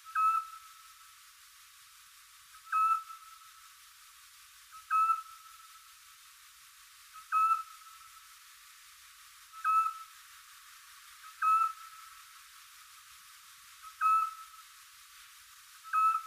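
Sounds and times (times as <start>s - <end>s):
Eurasian scops owl giving a clear whistled note: 0.0s - 0.6s, 2.6s - 3.2s, 4.8s - 5.4s, 7.2s - 7.7s, 9.6s - 10.1s, 11.4s - 11.9s, 13.9s - 14.6s, 15.8s - 16.2s.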